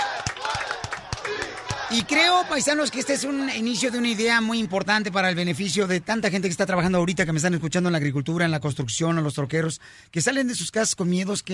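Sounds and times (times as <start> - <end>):
audience applause: 0.0 - 5.4
speech: 1.9 - 11.5.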